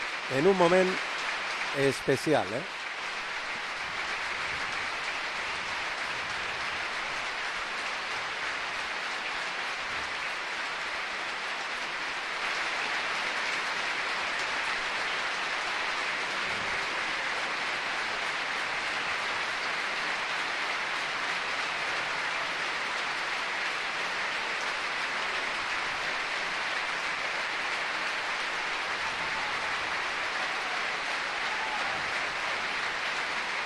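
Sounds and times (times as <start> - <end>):
stadium crowd ovation: 0.0 - 33.6
speech: 0.3 - 1.1, 1.8 - 2.8.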